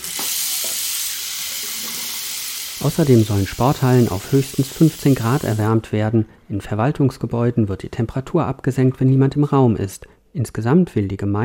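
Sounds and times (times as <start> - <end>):
cold water running from a shower: 0.0 - 5.7
speech: 2.8 - 11.4.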